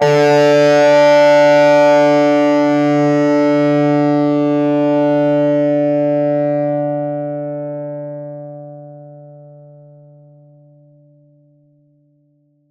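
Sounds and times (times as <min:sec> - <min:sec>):
plucked distorted acoustic and electric guitar note: 0:00.0 - 0:10.4.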